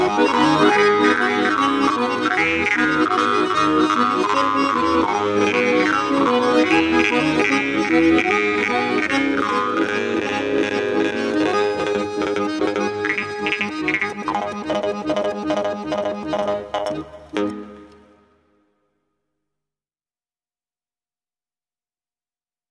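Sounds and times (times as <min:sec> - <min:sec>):
Altai vargan jaw harp: 0:00.0 - 0:18.0.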